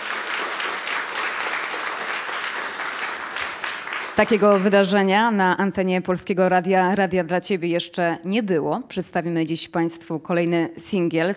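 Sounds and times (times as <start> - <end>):
audience applause: 0.0 - 4.9
speech: 4.2 - 11.3.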